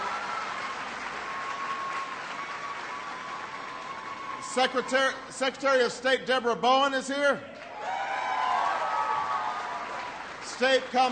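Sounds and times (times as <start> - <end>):
audience applause: 0.0 - 5.4, 7.6 - 11.1
speech: 4.5 - 7.6, 10.6 - 11.1.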